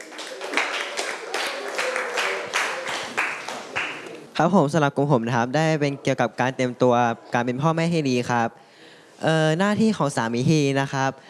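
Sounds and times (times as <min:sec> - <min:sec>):
applause for student representatives: 0:00.0 - 0:04.3
speech: 0:04.4 - 0:08.6, 0:09.2 - 0:11.2.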